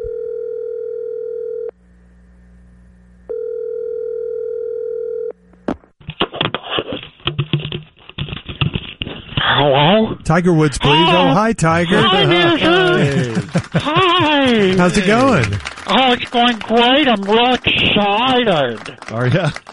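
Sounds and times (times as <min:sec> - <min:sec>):
telephone dial tone while calling: 0:00.0 - 0:01.8, 0:03.3 - 0:05.4
clattering clicking noise: 0:06.0 - 0:09.4, 0:13.1 - 0:19.7
speech: 0:09.7 - 0:19.7
laughter: 0:10.8 - 0:19.7.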